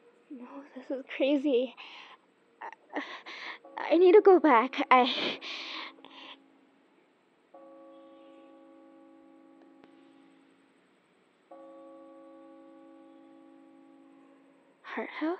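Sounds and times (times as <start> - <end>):
faint hiss: 0.0 - 15.3
speech: 0.3 - 5.6
church bells ringing at Hart House: 3.3 - 6.9, 7.6 - 15.3.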